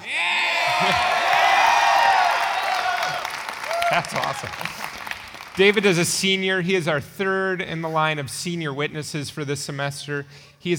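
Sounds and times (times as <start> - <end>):
crowd cheering and whooping: 0.0 - 5.1
speech: 0.8 - 1.1, 3.9 - 5.0, 5.6 - 10.7.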